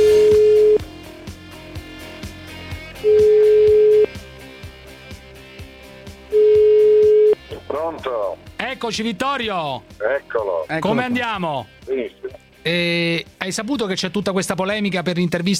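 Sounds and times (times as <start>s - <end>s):
phone line ringback tone: 0.0s - 0.8s, 3.1s - 4.2s, 6.3s - 7.4s
speech: 8.8s - 15.5s.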